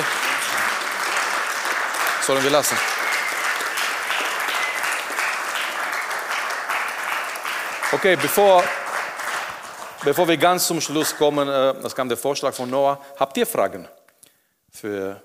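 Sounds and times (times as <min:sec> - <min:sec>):
audience applause: 0:00.0 - 0:11.5
speech: 0:02.3 - 0:03.0, 0:07.9 - 0:08.8, 0:10.0 - 0:14.0, 0:14.8 - 0:15.2.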